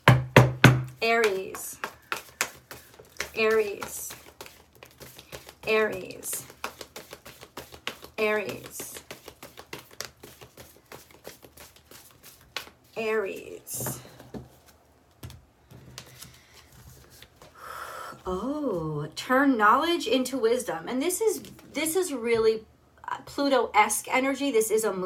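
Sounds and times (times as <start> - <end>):
speech: 1.0 - 1.8, 3.4 - 4.0, 5.7 - 6.4, 8.2 - 8.8, 13.0 - 14.1, 18.3 - 22.7, 23.4 - 25.0
tarot cards being handled: 1.1 - 17.6.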